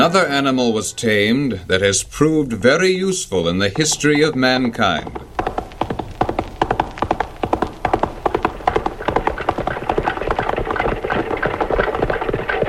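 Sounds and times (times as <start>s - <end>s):
speech: 0.0s - 5.6s
horse-drawn wagons rolling: 3.0s - 12.6s.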